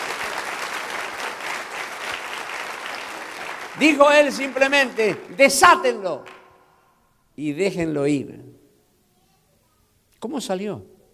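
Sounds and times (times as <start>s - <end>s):
audience applauding: 0.0s - 6.5s
speech: 3.8s - 6.4s, 7.4s - 8.6s, 10.2s - 10.9s.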